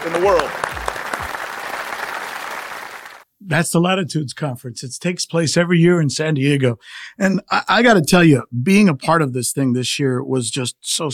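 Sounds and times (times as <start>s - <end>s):
speech: 0.0s - 0.7s, 3.5s - 11.1s
crowd applauding: 0.0s - 3.2s.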